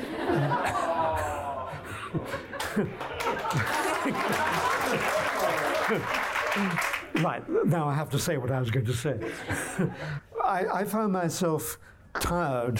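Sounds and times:
laughter: 0.0s - 7.0s, 9.1s - 10.5s
speech: 2.1s - 12.7s
audience applause: 2.5s - 7.3s.

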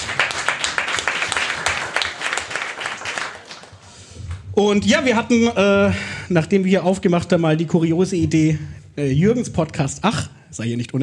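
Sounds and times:
applause from several people: 0.0s - 4.4s
speech: 4.6s - 11.0s.

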